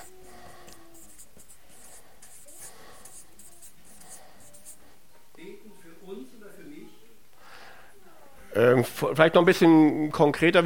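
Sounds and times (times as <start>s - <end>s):
handwriting scratching: 0.0s - 4.8s
speech: 8.6s - 10.6s.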